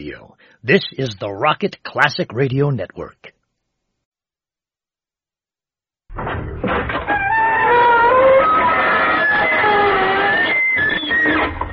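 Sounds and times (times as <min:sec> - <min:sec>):
speech: 0:00.0 - 0:03.3
creaking door: 0:06.1 - 0:11.7.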